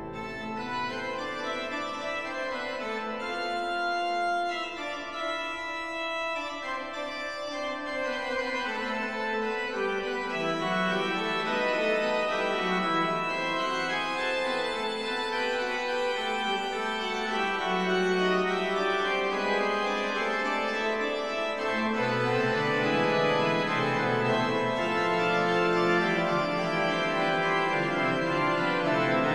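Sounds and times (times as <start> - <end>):
organ fugue: 0.0 - 29.3.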